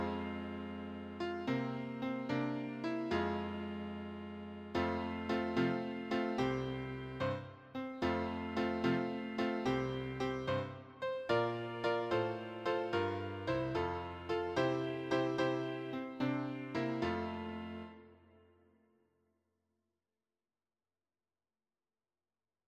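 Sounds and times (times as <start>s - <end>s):
piano accompaniment for church hymns: 0.0s - 18.1s.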